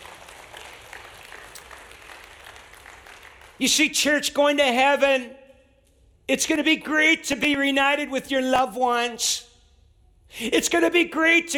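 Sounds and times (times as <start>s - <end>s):
audience clapping: 0.0s - 3.7s
speech: 3.6s - 5.4s, 6.3s - 9.5s, 10.3s - 11.5s.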